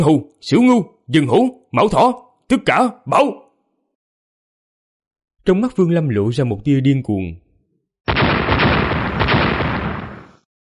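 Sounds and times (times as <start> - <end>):
speech: 0.0 - 3.4, 5.4 - 7.4
violent explosions echoing: 8.1 - 10.4.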